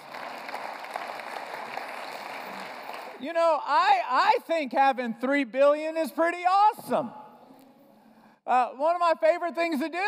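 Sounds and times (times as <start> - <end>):
crowd applauding: 0.0 - 3.2
speech: 3.2 - 7.2, 8.5 - 10.0.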